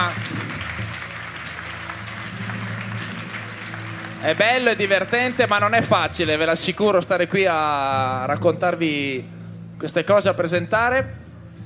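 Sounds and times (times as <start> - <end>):
audience applauding the contestants of a competition: 0.0 - 6.7
speech: 4.2 - 11.2.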